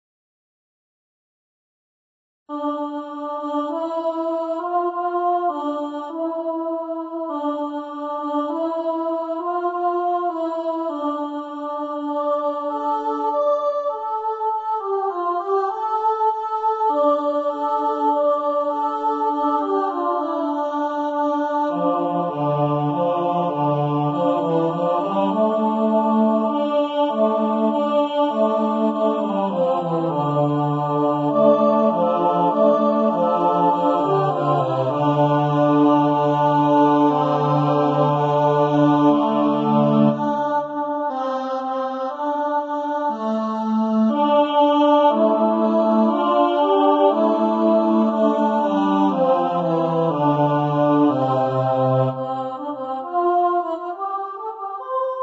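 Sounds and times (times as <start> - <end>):
vocals: 2.5 - 54.6.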